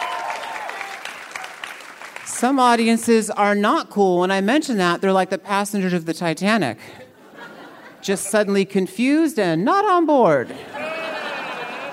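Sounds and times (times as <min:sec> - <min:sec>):
audience cheering: 0:00.0 - 0:02.0, 0:10.7 - 0:11.9
speech: 0:02.4 - 0:07.1, 0:08.0 - 0:10.8
laughter: 0:07.0 - 0:08.4, 0:10.4 - 0:11.9.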